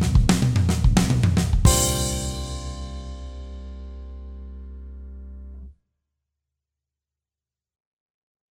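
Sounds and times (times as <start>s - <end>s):
pop drum fills: 0.0s - 4.2s.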